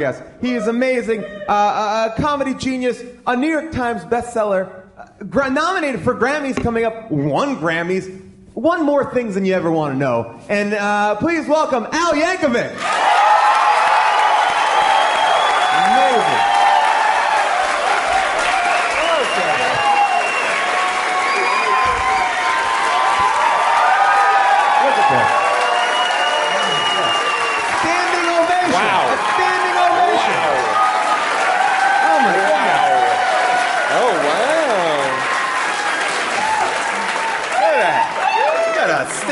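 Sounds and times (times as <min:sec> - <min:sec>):
speech: 0:00.0 - 0:13.1
live audience clapping as a guest is welcomed: 0:12.8 - 0:39.3.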